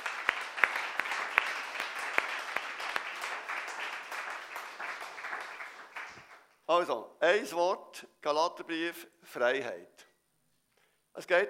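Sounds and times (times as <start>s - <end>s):
audience applause: 0.0s - 6.5s
speech: 6.7s - 10.1s, 11.2s - 11.4s.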